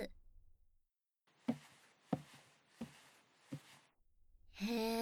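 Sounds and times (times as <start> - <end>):
relaxing ear cleaning sounds: 1.4 - 3.9.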